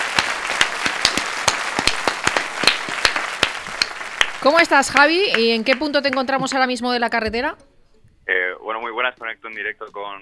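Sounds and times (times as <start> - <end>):
audience applause: 0.0 - 6.5
speech: 4.4 - 7.7, 8.3 - 10.2.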